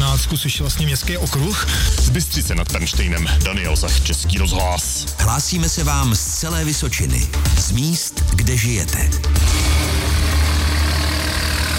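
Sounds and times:
speech: 0.3s - 9.7s
loader engine carrying oak railway sleepers at Kamenice nad Lipou station: 9.3s - 11.7s.

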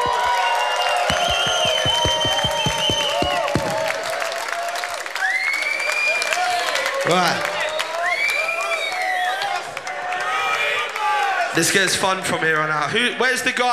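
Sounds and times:
audience clapping at a live stand-up gig: 0.0s - 10.3s
audience whoops and shouted cheers at a live stand-up gig: 0.6s - 11.3s
regular low thumps: 1.1s - 3.9s
speech: 7.1s - 7.5s, 11.6s - 13.7s.

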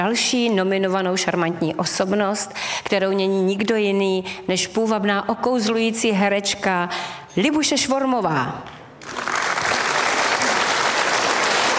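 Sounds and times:
speech: 0.0s - 9.3s
audience applause: 9.0s - 11.7s.

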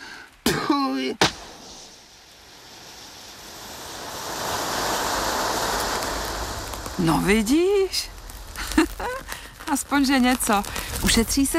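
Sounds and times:
speech: 0.8s - 1.3s, 7.0s - 8.2s, 9.7s - 11.5s
whoosh of firewood catching fire in a stove, lit by magic: 1.0s - 11.5s.

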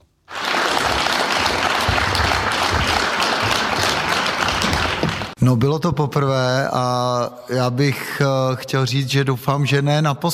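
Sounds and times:
big applause from a crowd: 0.3s - 5.4s
speech: 5.4s - 10.3s.

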